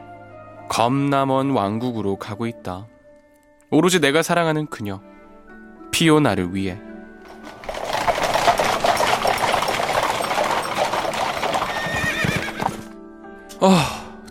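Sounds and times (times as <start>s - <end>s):
speech: 0.7s - 2.9s, 3.7s - 5.1s, 6.0s - 7.6s
hooves clattering: 7.2s - 13.0s
carriage wheels rolling: 7.3s - 12.9s
horse whinnying: 7.6s - 13.0s.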